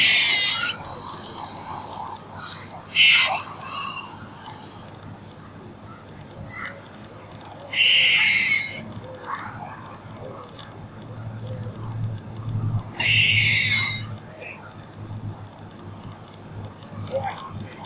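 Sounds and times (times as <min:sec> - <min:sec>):
squirrel uttering a short harsh buzzing chatter: 0:02.8 - 0:15.1, 0:16.2 - 0:17.8.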